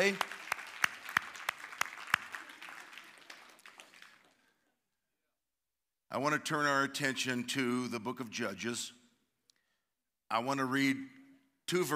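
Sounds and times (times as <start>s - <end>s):
speech: 0.0s - 0.3s, 6.1s - 9.0s, 10.3s - 11.9s
crowd applauding: 0.0s - 4.5s.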